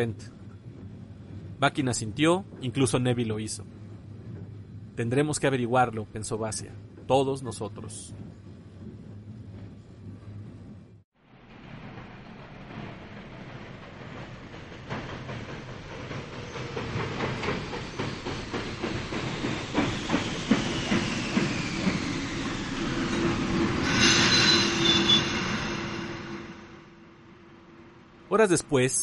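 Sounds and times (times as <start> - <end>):
speech: 0.0 - 0.4, 1.6 - 3.8, 5.0 - 8.2, 28.4 - 29.0
train rumbling on tracks: 0.0 - 29.0
train brake squeal: 23.2 - 26.8.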